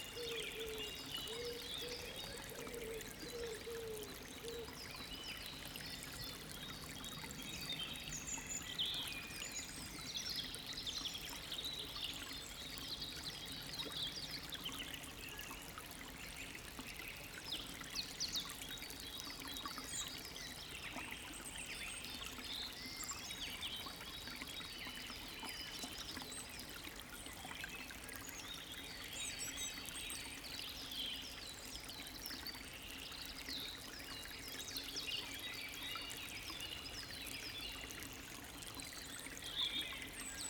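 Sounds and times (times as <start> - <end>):
small calm river: 0.0 - 40.4.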